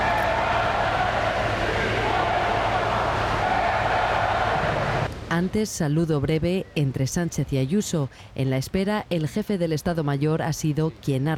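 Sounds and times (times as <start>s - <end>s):
crowd booing: 0.0s - 5.1s
speech: 5.4s - 11.3s.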